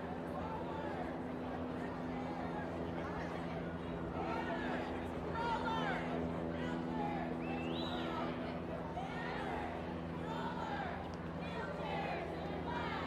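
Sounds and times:
crowd babble at a women's march: 0.0 - 13.0.

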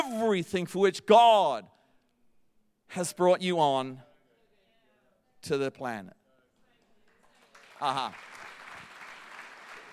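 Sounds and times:
speech: 0.1 - 1.8, 2.9 - 4.1, 5.4 - 6.2, 7.8 - 8.3
audience applause: 7.3 - 9.9.

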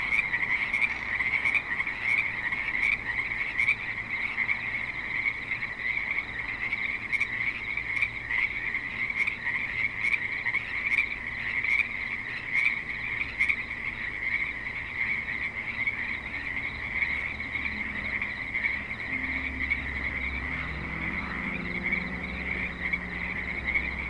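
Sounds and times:
frog chorus of trilled croaks: 0.0 - 24.0
vehicle engine droning: 15.3 - 24.0.

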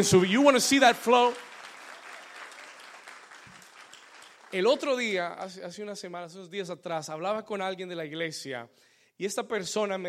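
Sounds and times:
speech: 0.0 - 1.5, 4.5 - 10.0
audience applause: 0.8 - 5.1.

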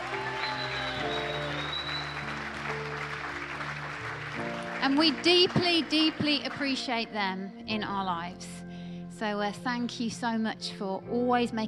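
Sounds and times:
church congregation applauding its pastors: 0.0 - 6.8
speech: 4.8 - 8.5, 9.2 - 11.6.

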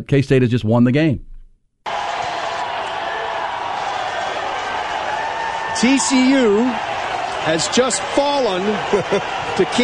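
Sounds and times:
speech: 0.0 - 1.3, 5.8 - 9.8
large stadium crowd cheering: 1.8 - 9.8
laughter: 7.4 - 9.8.

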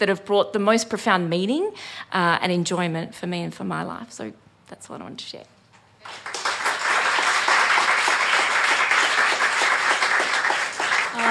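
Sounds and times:
speech: 0.0 - 6.4
crowd applause: 6.0 - 11.2.

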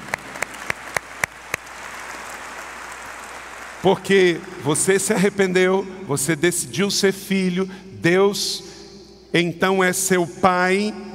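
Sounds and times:
audience applauding: 0.0 - 4.7
speech: 3.8 - 11.1.

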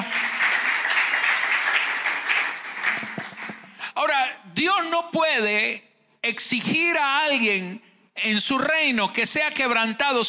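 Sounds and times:
audience applause: 0.0 - 3.8
speech: 5.0 - 10.2.

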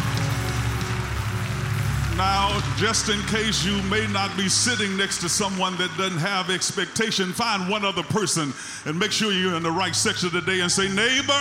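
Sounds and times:
audience clapping hands: 0.0 - 7.4
speech: 2.2 - 11.4.

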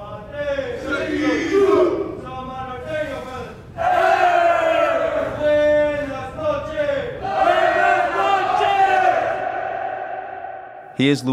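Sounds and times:
group of prisoners yelling and chanting in nightly shutdown ritual: 0.2 - 10.8.

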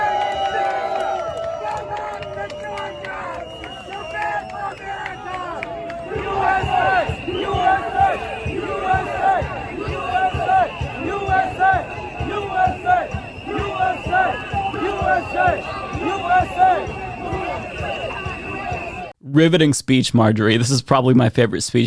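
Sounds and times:
counter-protesters whistling: 0.1 - 19.1
counter-protesters chanting: 0.5 - 19.1
speech: 19.4 - 21.8.

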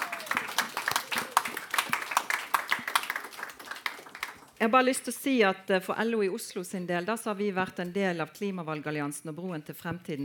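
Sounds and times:
audience clapping: 0.0 - 4.6
speech: 4.6 - 10.2.

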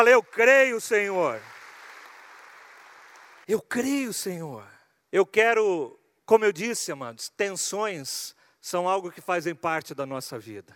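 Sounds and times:
speech: 0.0 - 1.6, 3.5 - 10.7
crowd applauding: 0.0 - 3.5.

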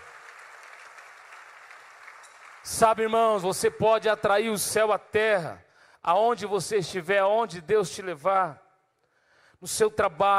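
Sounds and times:
audience applause: 0.0 - 2.7
speech: 2.6 - 8.6, 9.6 - 10.3.

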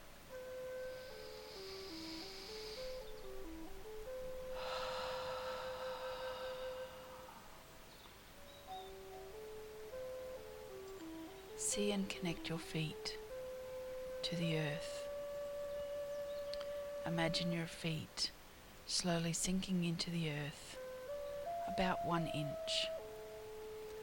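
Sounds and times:
gentle sustained melodic tones: 0.0 - 24.0
deep breath during a guided grounding meditation: 0.9 - 3.2, 4.5 - 7.7
speech: 11.8 - 13.2, 14.3 - 15.0, 17.0 - 20.8, 21.7 - 23.0.

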